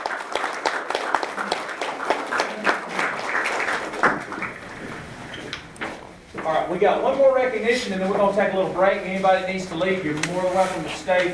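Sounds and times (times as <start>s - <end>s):
audience applause at a board meeting: 0.0s - 5.6s
speech: 6.7s - 11.3s.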